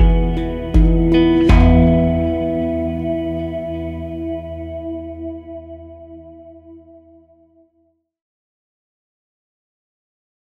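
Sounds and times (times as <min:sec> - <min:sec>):
pan drum: 0:00.0 - 0:03.6.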